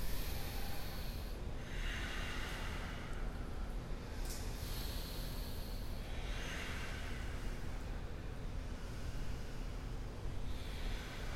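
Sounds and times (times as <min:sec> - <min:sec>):
low hum: 0:00.0 - 0:11.3
slow deep yoga breathing: 0:00.0 - 0:11.3.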